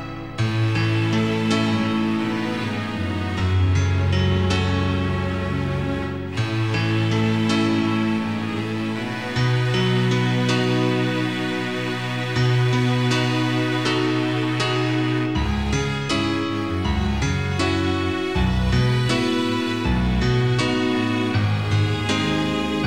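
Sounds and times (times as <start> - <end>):
instrumental piano piece: 0.0 - 22.8.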